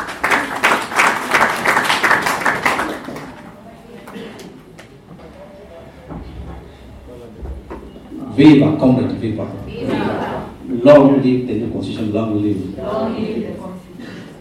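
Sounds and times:
audience clapping: 0:00.0 - 0:04.9
speech: 0:08.4 - 0:09.8, 0:10.8 - 0:13.7.

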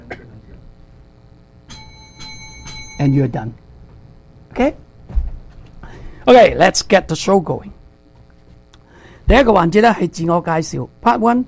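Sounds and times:
low room murmur: 0:00.0 - 0:11.4
countdown timer bell chimes: 0:01.7 - 0:03.6
speech: 0:03.0 - 0:03.6, 0:04.6 - 0:04.8, 0:06.3 - 0:07.8, 0:09.3 - 0:11.4.

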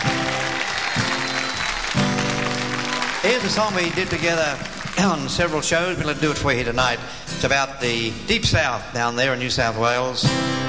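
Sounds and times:
audience applause at a concert: 0:00.0 - 0:06.5
speech: 0:03.2 - 0:10.6.

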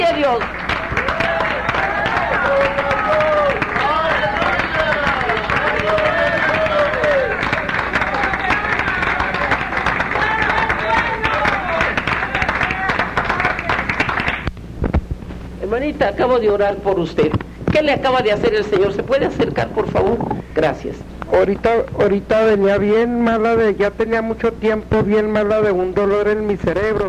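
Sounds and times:
audience applauding loudly: 0:00.0 - 0:14.5, 0:18.2 - 0:20.5
speech: 0:00.2 - 0:00.6, 0:15.9 - 0:27.0
people shouting and cheering: 0:00.8 - 0:13.8.

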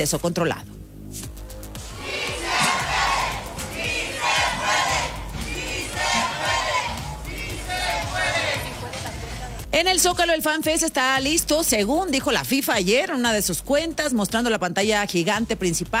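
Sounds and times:
speech: 0:00.0 - 0:01.3, 0:09.8 - 0:15.9
crowd of protesters chanting a slogan: 0:01.8 - 0:09.6.

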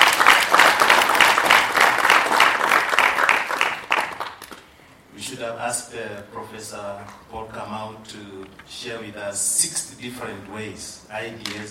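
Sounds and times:
crowd clapping: 0:00.0 - 0:04.7
speech: 0:05.4 - 0:11.6.

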